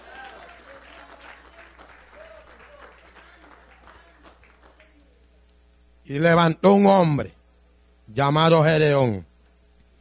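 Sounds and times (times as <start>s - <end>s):
audience applause: 0.0s - 5.0s
speech: 6.1s - 7.4s, 8.2s - 9.3s.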